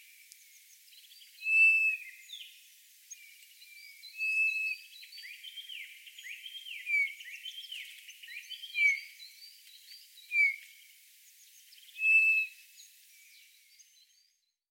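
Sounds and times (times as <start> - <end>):
Eurasian bullfinch Pyrrhula pyrrhula giving soft falling piped whistles: 1.4 - 2.1, 4.2 - 4.8, 12.0 - 12.5.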